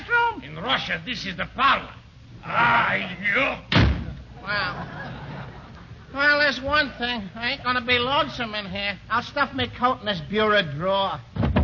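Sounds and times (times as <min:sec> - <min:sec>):
speech: 0:00.7 - 0:03.8, 0:04.4 - 0:05.1, 0:06.1 - 0:11.3
door closing: 0:03.7 - 0:04.3
laughter: 0:04.4 - 0:06.4.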